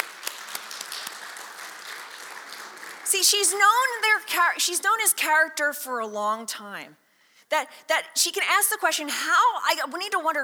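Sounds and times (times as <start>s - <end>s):
audience applause for actors: 0.0s - 3.6s
speech: 3.2s - 10.4s.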